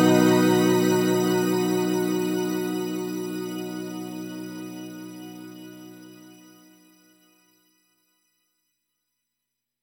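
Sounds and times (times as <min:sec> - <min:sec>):
Axe-Fx shimmer effect: 0:00.0 - 0:06.4.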